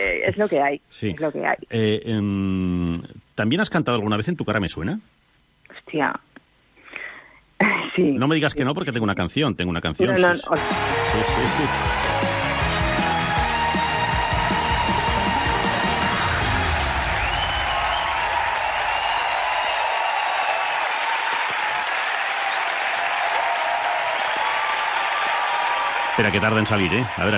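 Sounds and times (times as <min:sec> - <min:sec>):
speech: 0:00.0 - 0:05.1, 0:05.9 - 0:06.3, 0:07.6 - 0:12.2, 0:26.2 - 0:27.3
audience applause: 0:10.6 - 0:27.3.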